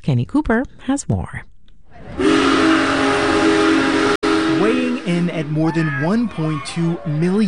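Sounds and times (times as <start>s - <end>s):
speech: 0.1s - 1.5s, 5.1s - 7.4s
Union Pacific Big Boy No. 4014 steam locomotive whistle in Pottstown: 2.2s - 5.8s.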